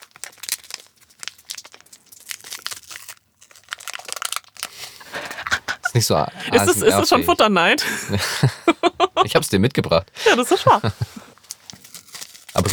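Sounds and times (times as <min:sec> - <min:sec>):
candy bar wrapper crinkling: 0:00.0 - 0:05.6, 0:11.0 - 0:12.7
laughter: 0:05.0 - 0:11.3
speech: 0:06.0 - 0:11.2.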